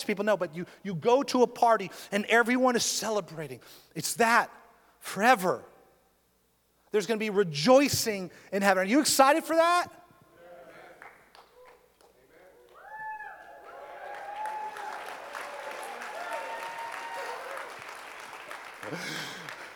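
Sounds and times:
speech: 0.0 - 5.7, 6.9 - 10.0
audience applauding: 12.6 - 19.7
cheers and whoops: 12.7 - 18.1.

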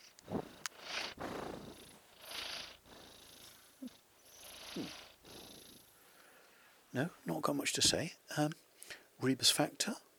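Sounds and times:
cat purring while breathing asleep: 0.0 - 6.0
speech: 7.0 - 10.1.

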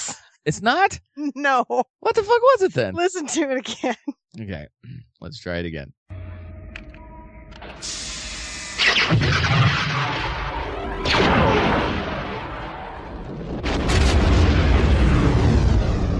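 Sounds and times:
speech: 0.4 - 6.0, 9.0 - 10.4
Death Star super laser firing on Alderaan: 7.6 - 16.1.

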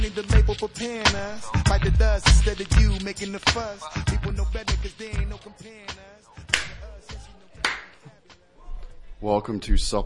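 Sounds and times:
speech: 0.1 - 7.1, 9.2 - 10.0
hand clapping: 6.5 - 8.4.

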